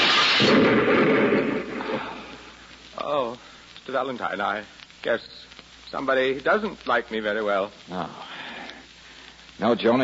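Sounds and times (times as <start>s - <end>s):
hand grenade explosion: 0.0s - 2.4s
speech: 3.1s - 8.3s, 9.6s - 10.0s.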